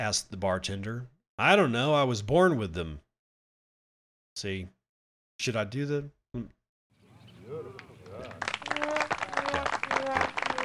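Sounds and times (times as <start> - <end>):
speech: 0.0 - 3.0, 4.4 - 4.8, 5.4 - 6.6
voices laughing and talking: 7.2 - 10.6
golf clap: 7.4 - 10.6.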